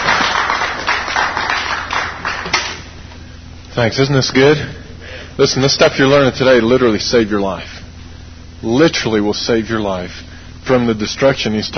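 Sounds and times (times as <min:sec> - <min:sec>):
audience clapping: 0:00.0 - 0:02.9
speech: 0:03.8 - 0:04.8, 0:05.4 - 0:07.8, 0:08.6 - 0:11.7.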